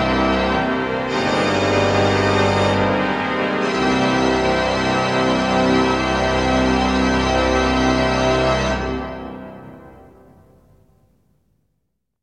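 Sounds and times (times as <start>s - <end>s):
organ improvisation: 0.0s - 9.4s.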